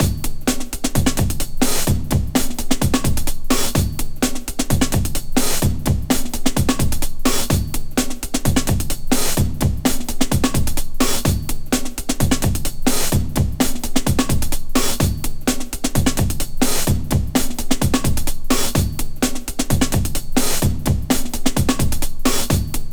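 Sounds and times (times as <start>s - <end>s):
breakbeat: 0.0s - 22.9s.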